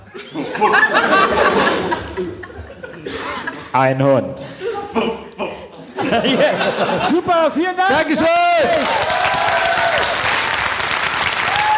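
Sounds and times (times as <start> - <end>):
laughter: 0.0 - 3.7, 4.4 - 7.6
speech: 0.3 - 1.4, 3.7 - 5.1, 6.1 - 9.4
audience applause: 8.5 - 11.7.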